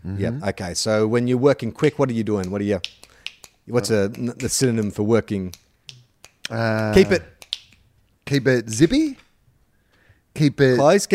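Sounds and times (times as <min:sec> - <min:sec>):
speech: 0:00.0 - 0:03.1, 0:03.7 - 0:05.7, 0:06.5 - 0:07.3, 0:08.3 - 0:09.2, 0:10.4 - 0:11.1
finger snapping: 0:02.4 - 0:03.6, 0:05.5 - 0:07.9.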